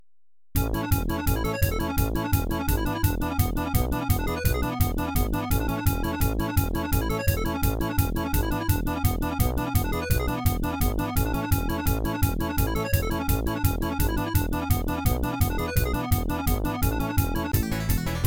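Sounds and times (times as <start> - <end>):
polka intro: 0.6 - 18.2.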